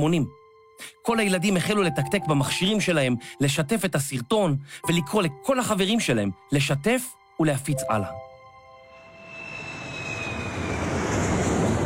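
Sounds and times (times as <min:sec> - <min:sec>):
speech: 0:00.0 - 0:08.2
airplane in flight engine roar: 0:08.8 - 0:11.8
thin high whine: 0:08.8 - 0:11.8.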